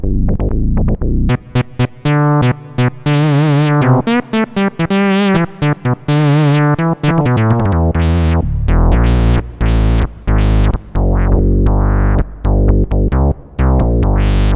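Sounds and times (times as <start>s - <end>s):
synth bass: 0.0s - 14.5s.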